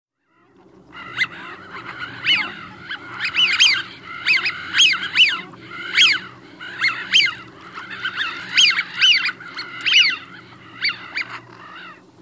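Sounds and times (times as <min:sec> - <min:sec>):
Eurasian wigeon whistled calls: 0:01.0 - 0:12.0.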